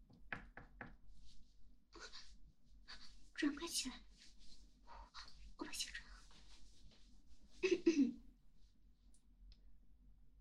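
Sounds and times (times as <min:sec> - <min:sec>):
knocking on a door: 0:00.0 - 0:01.0
speech: 0:03.4 - 0:04.1.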